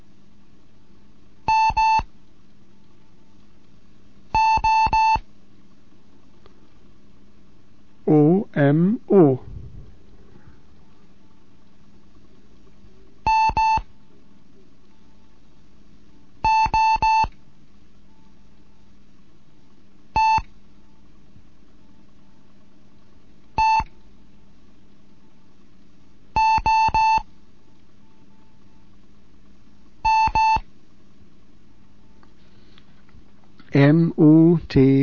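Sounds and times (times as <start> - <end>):
Morse code beeps: 1.5 - 2.1, 4.4 - 5.2, 13.3 - 13.8, 16.4 - 17.3, 20.2 - 20.5, 23.6 - 23.9, 26.4 - 27.3, 30.0 - 30.6
speech: 8.1 - 9.4, 33.7 - 35.0.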